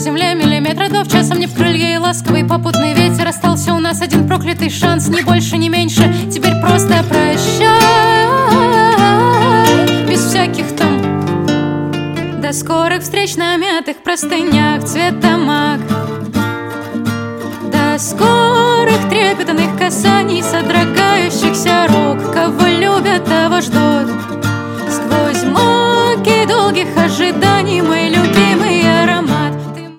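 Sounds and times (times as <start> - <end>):
acoustic music: 0.0 - 29.9.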